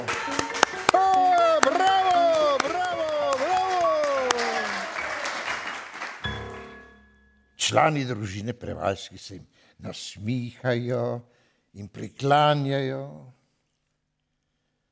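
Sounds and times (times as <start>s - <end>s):
enthusiastic clapping: 0.0s - 6.3s
speech: 7.7s - 13.4s.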